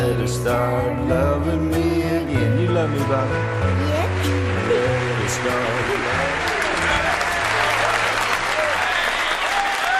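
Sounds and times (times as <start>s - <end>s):
speech: 0.2s - 4.1s, 5.3s - 6.6s
canned audience applause: 3.5s - 9.9s.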